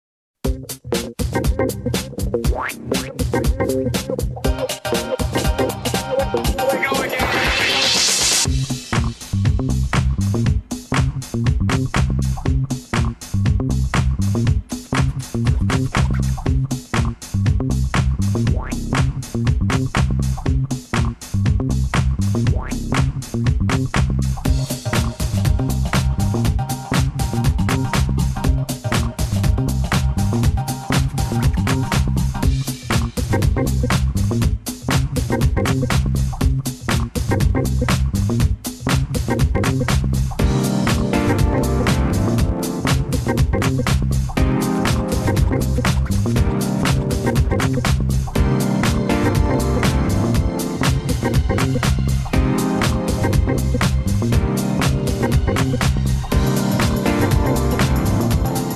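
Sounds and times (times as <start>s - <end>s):
mysterious beat: 0.5s - 7.5s, 8.1s - 58.7s.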